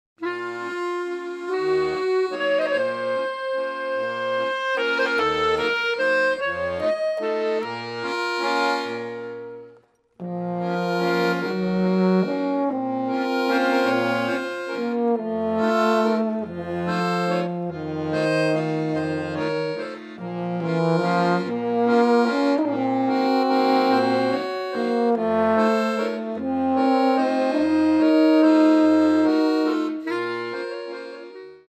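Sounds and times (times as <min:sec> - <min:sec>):
waltz music: 0:00.2 - 0:31.6.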